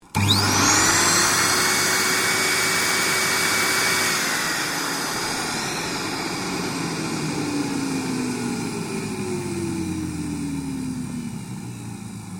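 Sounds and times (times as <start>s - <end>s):
vacuum cleaner switching on and off: 0.0s - 12.3s.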